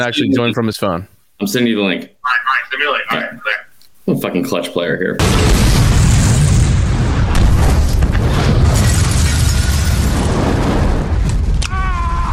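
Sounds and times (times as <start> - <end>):
speech: 0.0 - 5.9
bomb explosion: 5.2 - 12.3.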